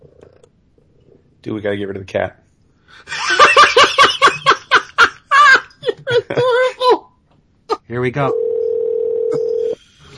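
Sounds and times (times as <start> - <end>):
speech: 1.4 - 3.2, 7.9 - 8.4
laughter: 3.1 - 6.9
telephone dial tone: 8.3 - 9.8.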